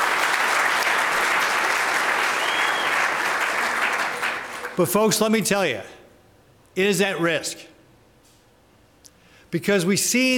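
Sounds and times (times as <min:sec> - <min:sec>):
large audience applause: 0:00.0 - 0:04.9
speech: 0:04.8 - 0:05.9, 0:06.8 - 0:07.7, 0:09.5 - 0:10.3.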